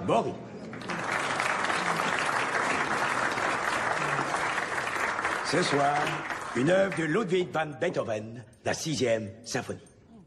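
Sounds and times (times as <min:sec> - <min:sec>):
speech: 0:00.1 - 0:00.6, 0:05.5 - 0:09.9
audience applause for violinist: 0:00.7 - 0:07.3.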